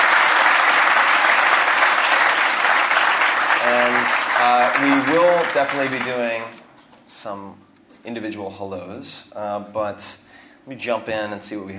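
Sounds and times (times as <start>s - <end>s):
audience applause: 0.0s - 6.6s
speech: 4.4s - 11.7s.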